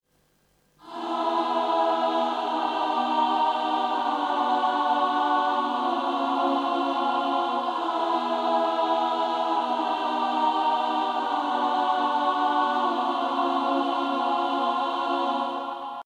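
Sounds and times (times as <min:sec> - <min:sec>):
choir singing in Steinhof Kirche in Vienna: 0:00.8 - 0:16.0.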